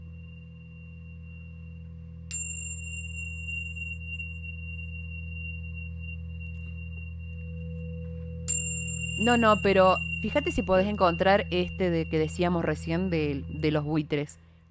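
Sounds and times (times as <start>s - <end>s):
bell tolling: 8.5s - 14.0s
speech: 9.2s - 14.4s.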